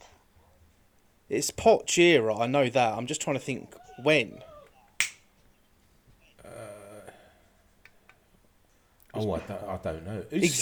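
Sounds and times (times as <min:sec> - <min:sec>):
speech: 0:01.3 - 0:04.5, 0:09.2 - 0:10.6
finger snap: 0:05.0 - 0:05.2.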